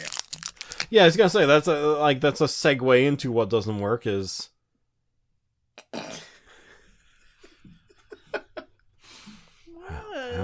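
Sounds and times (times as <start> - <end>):
wrapper crinkling: 0.0 - 1.2
speech: 0.9 - 4.5
laughter: 6.2 - 8.9.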